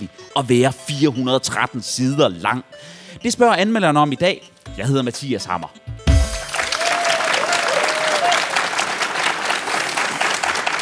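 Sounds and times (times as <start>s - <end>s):
speech: 0.4s - 5.8s
live audience at the Bogforum book fair stage: 6.1s - 10.8s.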